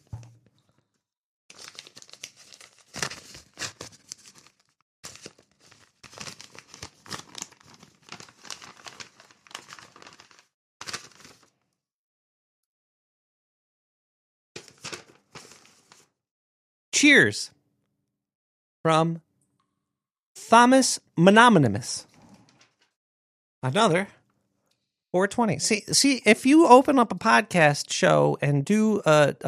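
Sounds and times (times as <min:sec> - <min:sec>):
paper crinkling and tearing as a mailed package is opened: 0:01.5 - 0:11.5, 0:14.6 - 0:16.1
speech: 0:17.0 - 0:17.6, 0:18.8 - 0:19.3, 0:20.5 - 0:22.1, 0:23.6 - 0:24.2, 0:25.2 - 0:29.4.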